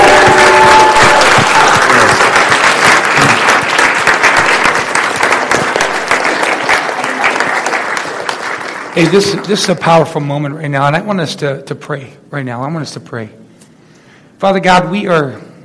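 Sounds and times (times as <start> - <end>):
faint cheers: 0.0 - 2.2
large crowd applause: 0.0 - 9.7
speech: 9.0 - 13.4, 14.4 - 15.5.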